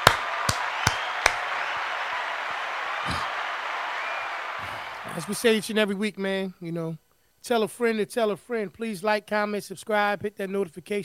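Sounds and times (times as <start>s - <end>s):
hands clapping: 0.0s - 5.7s
speech: 5.2s - 11.0s.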